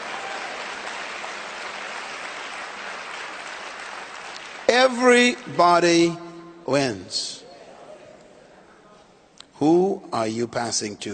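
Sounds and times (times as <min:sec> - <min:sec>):
audience clapping hands: 0:00.0 - 0:05.5
speech: 0:04.7 - 0:07.4, 0:09.6 - 0:11.1.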